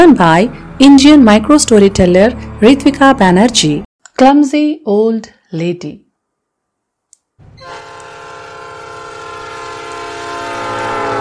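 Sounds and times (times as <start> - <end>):
speech: 0.0 - 6.0
local train horn on the last local train from Sarampur: 7.5 - 11.2.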